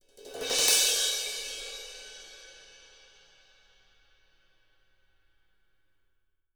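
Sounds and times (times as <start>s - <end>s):
cymbals: 0.1s - 3.8s.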